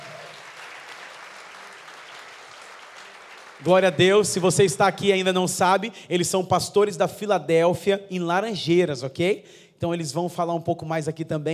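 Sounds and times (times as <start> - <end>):
church audience applauding: 0.0 - 4.8
speech: 3.6 - 11.5.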